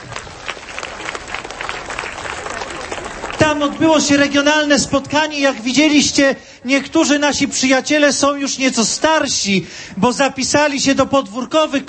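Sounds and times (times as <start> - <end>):
audience applause: 0.0 - 5.8
speech: 3.5 - 11.8.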